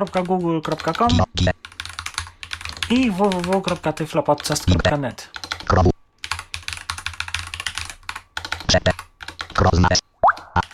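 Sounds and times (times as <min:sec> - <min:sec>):
screen reader voice: 0:00.0 - 0:01.6, 0:02.7 - 0:05.9
speech: 0:00.0 - 0:01.8, 0:02.9 - 0:05.9, 0:08.7 - 0:08.9, 0:09.6 - 0:10.0
computer keyboard typing web addresses: 0:00.0 - 0:10.7.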